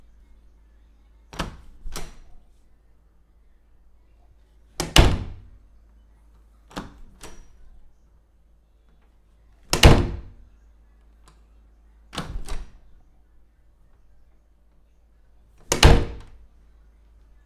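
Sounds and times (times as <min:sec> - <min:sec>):
door opening and closing: 0:01.3 - 0:02.4, 0:04.8 - 0:05.5, 0:06.7 - 0:07.6, 0:09.7 - 0:10.4, 0:12.2 - 0:12.9, 0:15.6 - 0:16.4.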